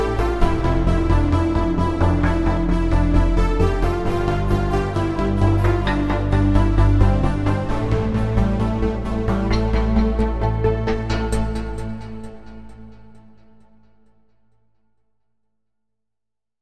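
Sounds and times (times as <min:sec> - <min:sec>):
Wavestation gated synth: 0:00.0 - 0:12.9.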